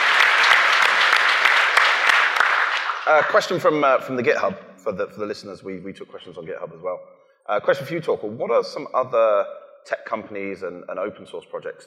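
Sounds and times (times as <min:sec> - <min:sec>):
round of applause: 0:00.0 - 0:03.8
speech: 0:03.1 - 0:11.8.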